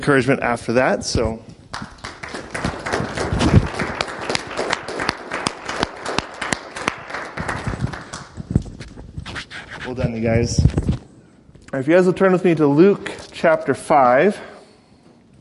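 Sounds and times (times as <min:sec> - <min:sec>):
speech: 0:00.0 - 0:01.9, 0:10.2 - 0:10.8, 0:11.7 - 0:14.5
scattered clapping from a small group at a church service: 0:01.7 - 0:09.0.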